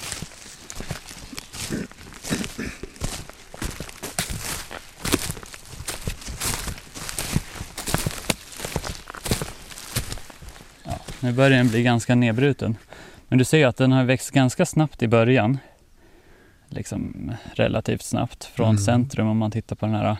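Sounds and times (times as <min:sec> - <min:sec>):
footsteps of people walking up to an old tree stump in a forest: 0:00.0 - 0:12.8
speech: 0:11.2 - 0:15.7, 0:16.7 - 0:20.1.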